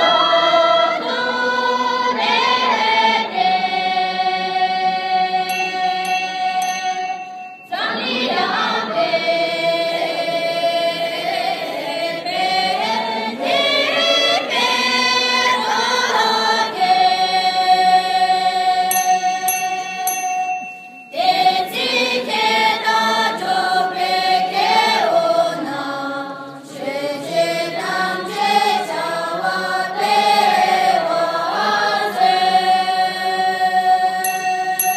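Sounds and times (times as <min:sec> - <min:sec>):
crowd singing a soccer song: 0:00.0 - 0:20.0, 0:21.1 - 0:34.8.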